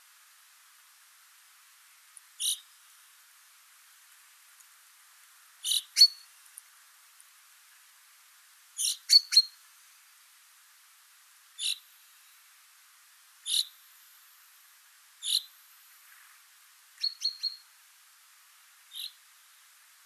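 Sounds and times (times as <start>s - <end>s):
common chaffinch Fringilla coelebs calling: 2.2s - 2.8s, 5.6s - 6.7s, 8.8s - 9.6s, 11.6s - 11.9s, 13.4s - 13.8s, 15.2s - 17.7s, 18.8s - 19.3s.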